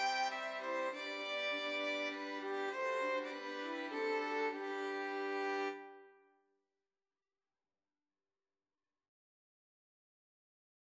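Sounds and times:
violin ensemble: 0.0 - 6.0.

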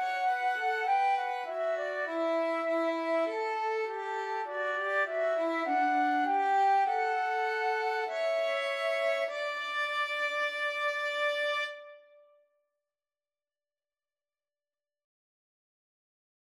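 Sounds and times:
violin in a flute and violin duet: 0.0 - 12.2
flute in a flute and violin duet: 0.0 - 12.3.

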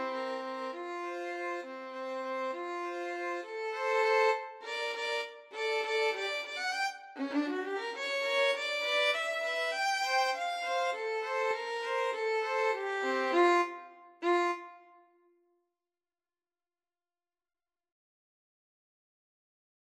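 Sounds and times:
violin trio waltz: 0.0 - 14.7.

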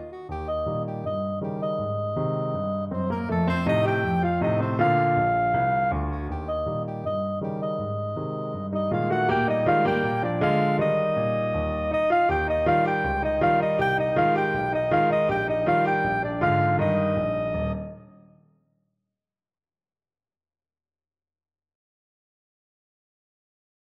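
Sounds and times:
soprano saxophone: 0.0 - 18.0.

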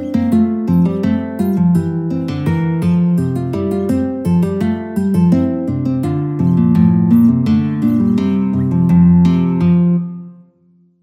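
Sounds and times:
bourree played on guitar: 0.0 - 10.9.

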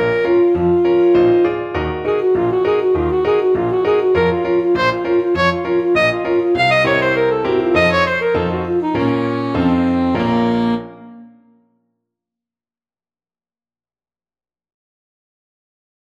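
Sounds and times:
saxophone: 0.0 - 11.6.

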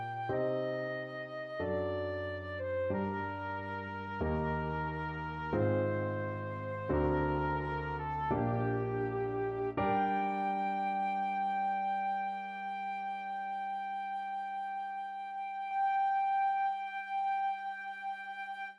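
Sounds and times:
flute playing a classical prelude: 0.0 - 18.7.

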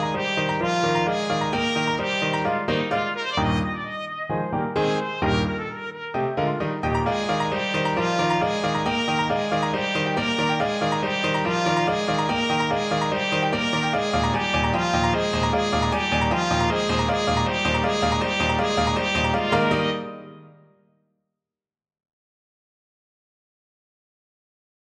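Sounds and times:
trumpet playing: 0.0 - 20.5.

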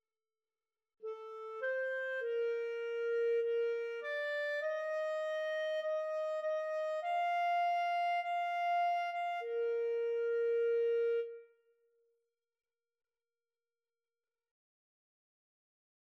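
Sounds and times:
flute and clarinet duet: 1.0 - 11.5.

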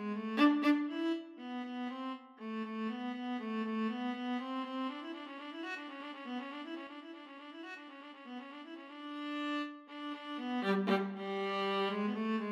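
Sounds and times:
cello: 0.0 - 4.2, 9.2 - 12.5
viola: 0.0 - 7.0, 8.4 - 12.5.

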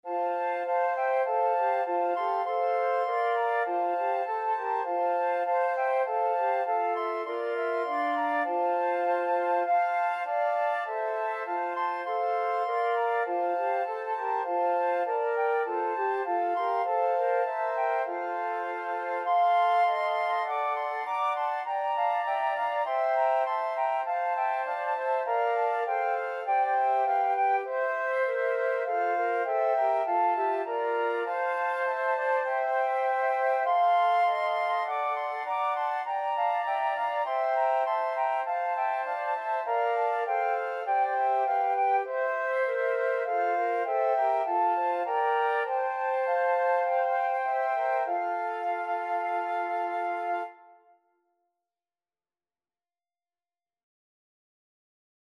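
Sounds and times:
flute quartet: 0.0 - 51.0.

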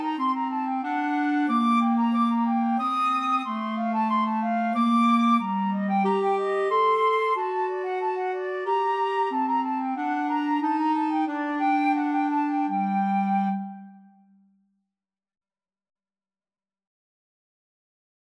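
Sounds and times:
clarinet in a rondeau duet: 0.0 - 14.4
flute in a rondeau duet: 0.0 - 14.4.

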